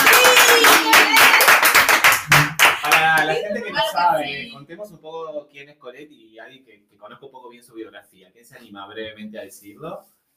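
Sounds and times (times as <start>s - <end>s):
audience applause: 0.0s - 3.5s
speech: 3.9s - 10.2s.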